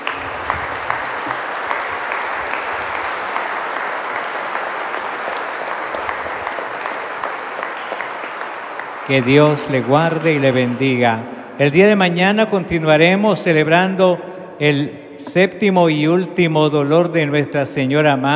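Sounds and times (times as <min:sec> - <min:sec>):
audience applause: 0:00.0 - 0:11.7
speech: 0:09.1 - 0:18.3.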